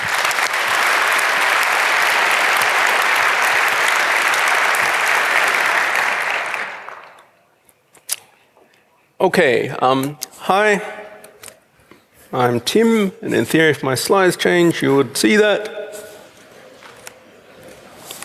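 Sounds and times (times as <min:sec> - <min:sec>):
audience applause: 0:00.0 - 0:07.3
speech: 0:09.2 - 0:11.0, 0:12.3 - 0:15.8.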